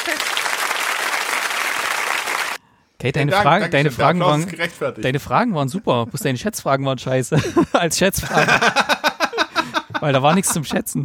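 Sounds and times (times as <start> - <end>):
applause for a player during a quiz game among friends: 0.0 - 2.6
speech: 3.0 - 9.0, 10.0 - 11.0
laughter: 7.3 - 11.0.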